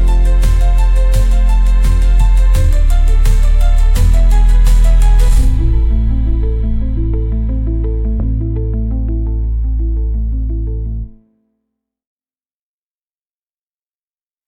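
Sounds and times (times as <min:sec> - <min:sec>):
intense emotional motivational music: 0:00.0 - 0:11.1.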